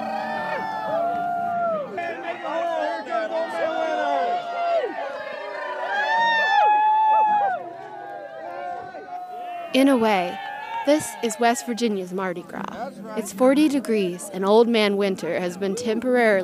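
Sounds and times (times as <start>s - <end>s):
crowd cheering and howling at a bonfire: 0.0s - 14.2s
speech: 9.8s - 16.4s.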